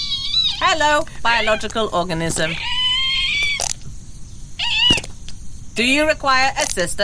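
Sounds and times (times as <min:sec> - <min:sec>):
agitated bird squawking: 0:00.0 - 0:03.8, 0:04.6 - 0:05.3
speech: 0:00.6 - 0:02.8, 0:05.8 - 0:07.0.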